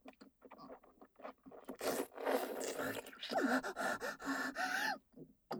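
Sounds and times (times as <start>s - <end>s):
ASMR sounds: 1.8s - 4.9s.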